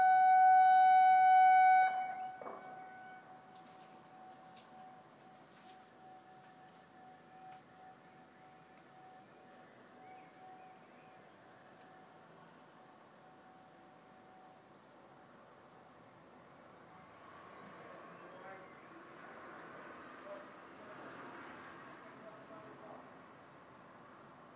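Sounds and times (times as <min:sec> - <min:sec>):
siren test: 0:00.0 - 0:14.5.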